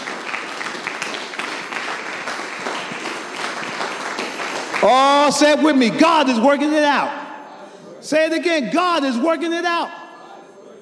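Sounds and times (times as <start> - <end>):
audience applauding: 0.0 - 5.6
speech: 4.8 - 7.2, 8.0 - 10.0.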